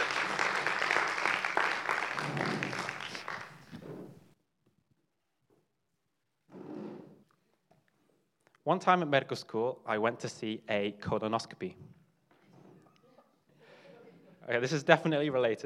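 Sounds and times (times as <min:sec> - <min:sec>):
audience applause: 0:00.0 - 0:03.9
speech: 0:08.7 - 0:11.9, 0:14.5 - 0:15.6.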